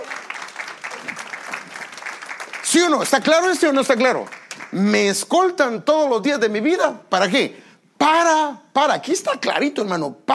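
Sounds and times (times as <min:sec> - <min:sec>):
audience applauding: 0:00.0 - 0:04.8
speech: 0:02.7 - 0:10.3.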